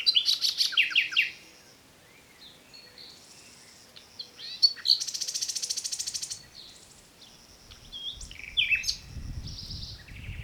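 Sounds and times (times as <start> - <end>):
common nightingale Luscinia megarhynchos song: 0.0 - 10.4.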